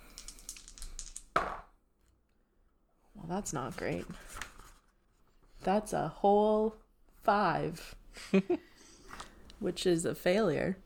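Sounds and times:
dice rattling: 0:00.0 - 0:01.7
speech: 0:03.3 - 0:04.4, 0:05.6 - 0:08.7, 0:09.6 - 0:10.8.

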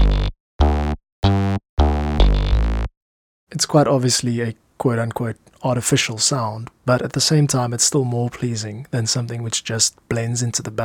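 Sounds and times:
bass with fret buzz: 0:00.0 - 0:02.9
speech: 0:03.6 - 0:10.8.

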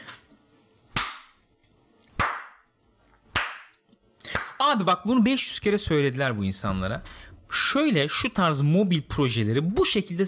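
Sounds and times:
hand claps: 0:00.9 - 0:01.4, 0:02.1 - 0:02.7, 0:03.3 - 0:04.6
speech: 0:04.7 - 0:10.2.

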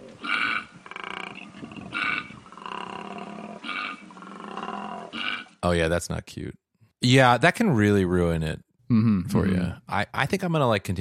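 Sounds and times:
koala bellowing: 0:00.0 - 0:05.6
speech: 0:05.6 - 0:10.9.

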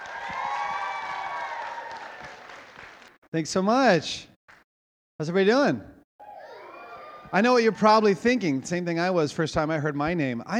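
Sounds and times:
high whoops from an elementary school audience: 0:00.0 - 0:02.6
elementary school audience clapping to welcome a chapel speaker: 0:00.0 - 0:03.2
speech: 0:03.3 - 0:04.3, 0:05.2 - 0:06.0, 0:07.3 - 0:10.5.

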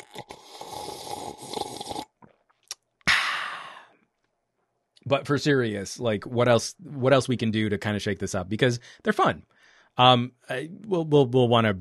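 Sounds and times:
ASMR wet slurping sip: 0:00.0 - 0:02.3
breathy burst: 0:03.1 - 0:04.0
speech: 0:05.1 - 0:11.7.

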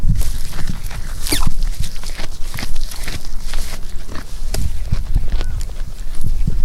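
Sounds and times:
camelids munching their feed: 0:00.0 - 0:06.6
hooves shuffling: 0:00.0 - 0:06.6.

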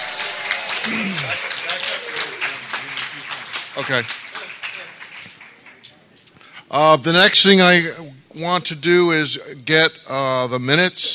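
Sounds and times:
voices calling out and chattering: 0:00.0 - 0:03.4
crowd applause: 0:00.0 - 0:06.0
speech: 0:00.8 - 0:01.3, 0:03.8 - 0:04.2, 0:06.7 - 0:11.1.

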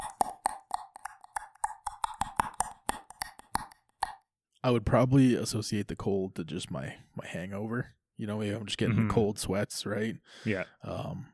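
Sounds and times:
voice imitating a clicking noise with mouth clicks: 0:00.0 - 0:04.3
speech: 0:04.6 - 0:11.3.

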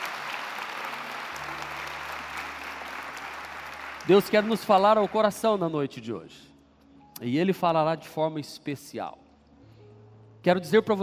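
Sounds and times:
audience applause: 0:00.0 - 0:05.4
speech: 0:04.1 - 0:06.5, 0:07.2 - 0:09.2, 0:10.4 - 0:11.0.

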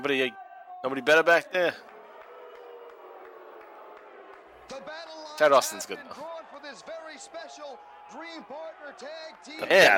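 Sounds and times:
speech: 0:00.0 - 0:01.9, 0:04.7 - 0:09.9
wrestling crowd booing: 0:00.0 - 0:09.9.

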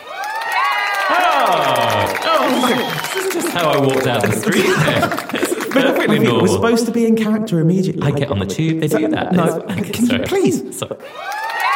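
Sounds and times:
studio audience cheering and whooping: 0:00.0 - 0:06.2, 0:11.0 - 0:11.7
laughter: 0:01.1 - 0:06.9, 0:08.0 - 0:11.4
speech: 0:01.5 - 0:11.4.

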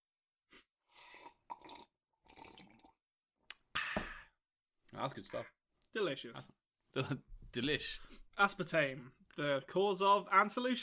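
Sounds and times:
slurping sips of a drink: 0:00.6 - 0:02.9
speech: 0:05.0 - 0:10.8.

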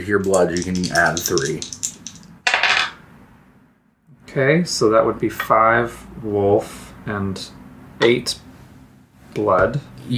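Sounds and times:
speech: 0:00.0 - 0:01.8, 0:04.4 - 0:08.4, 0:09.3 - 0:10.1
dice rolling: 0:00.1 - 0:03.0.

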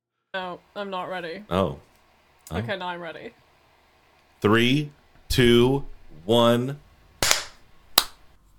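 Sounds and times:
speech: 0:00.4 - 0:01.9, 0:02.5 - 0:03.4, 0:04.4 - 0:06.8
three people clapping hands: 0:07.2 - 0:08.2.

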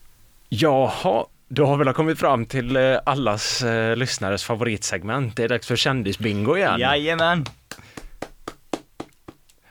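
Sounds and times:
speech: 0:00.6 - 0:07.6
slow hand claps: 0:07.2 - 0:09.6.

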